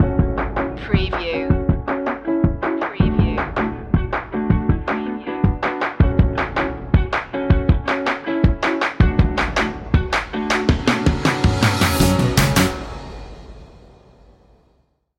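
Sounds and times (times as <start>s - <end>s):
funky hop music: 0.0s - 13.2s.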